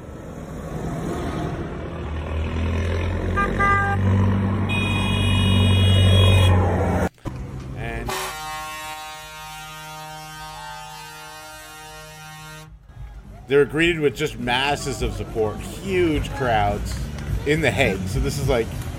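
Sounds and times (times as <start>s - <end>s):
convoy of tractors driving: 0.0s - 18.9s
speech: 13.5s - 18.9s.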